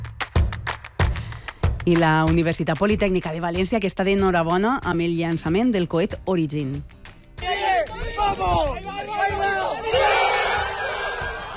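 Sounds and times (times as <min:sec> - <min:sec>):
speech: 0:01.8 - 0:07.0
Universitat Politècnica students cheering as the Origin rocket reaches altitude: 0:07.4 - 0:11.5.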